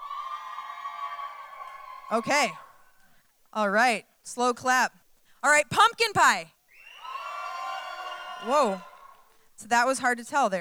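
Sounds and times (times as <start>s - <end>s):
audience cheering: 0.0s - 3.0s, 6.7s - 9.4s
speech: 2.1s - 2.6s, 3.6s - 6.6s, 8.4s - 8.9s, 9.6s - 10.5s.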